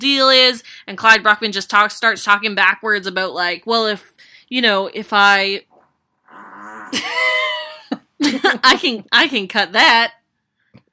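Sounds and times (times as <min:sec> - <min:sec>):
speech: 0:00.0 - 0:05.7, 0:08.2 - 0:10.2
big fart: 0:05.7 - 0:07.0.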